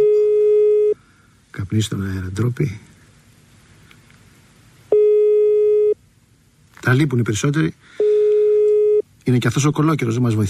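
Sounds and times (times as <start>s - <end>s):
telephone busy signal: 0.0s - 1.0s, 4.9s - 6.0s, 8.0s - 9.0s
speech: 1.6s - 2.9s, 6.9s - 8.0s, 9.3s - 10.4s.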